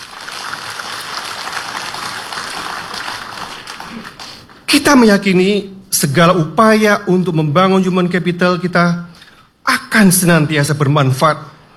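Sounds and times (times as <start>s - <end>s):
audience applause honouring radio journalists who completed a competency test: 0.0s - 4.5s
speech: 4.8s - 9.1s, 10.0s - 11.5s.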